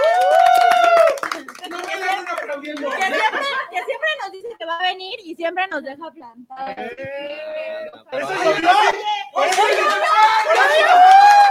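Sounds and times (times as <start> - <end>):
audience applause: 0.0 - 3.4, 9.4 - 11.4
laughter: 1.3 - 4.2
speech: 5.5 - 10.9.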